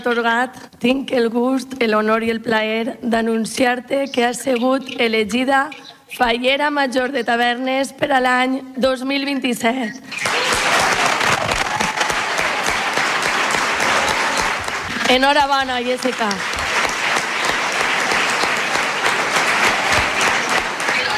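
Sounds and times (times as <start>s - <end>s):
speech: 0.0s - 10.6s, 15.1s - 16.6s
applause: 10.2s - 21.1s.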